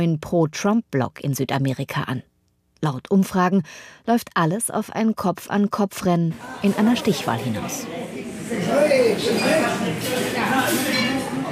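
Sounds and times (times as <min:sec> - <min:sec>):
speech: 0:00.0 - 0:10.8
dishes clinking in a busy corner restaurant: 0:10.6 - 0:11.3.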